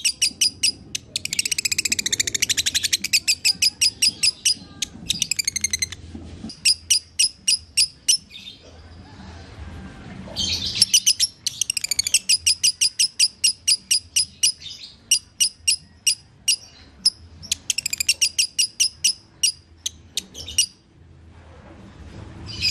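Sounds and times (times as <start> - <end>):
lovebird chattering song: 0.0 - 8.7, 10.4 - 20.8.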